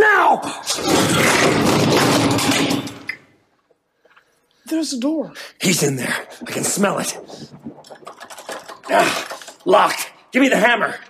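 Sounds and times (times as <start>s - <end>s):
heavy dresser tipped over crashing onto the floor: 0.8s - 3.0s
speech: 4.8s - 11.0s.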